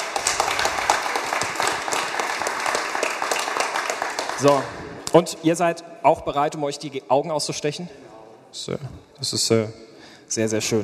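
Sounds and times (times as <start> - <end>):
audience applause: 0.0 - 5.1
speech: 4.4 - 10.8.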